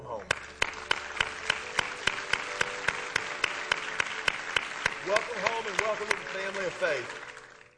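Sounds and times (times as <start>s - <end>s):
church congregation applauding to welcome new members: 0.0s - 7.7s
speech: 5.1s - 7.3s.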